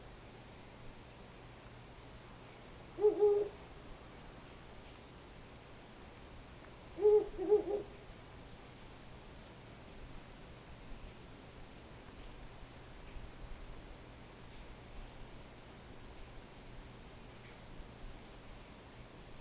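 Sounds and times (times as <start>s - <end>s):
faint steady hum: 0.0s - 19.4s
owl hooting: 3.0s - 3.6s, 7.0s - 8.0s.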